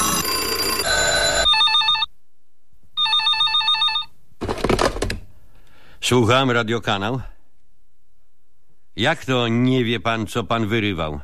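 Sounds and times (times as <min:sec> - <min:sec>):
telephone bell ringing: 0:00.0 - 0:02.1, 0:03.0 - 0:04.1
speech: 0:06.1 - 0:07.3, 0:09.0 - 0:11.2.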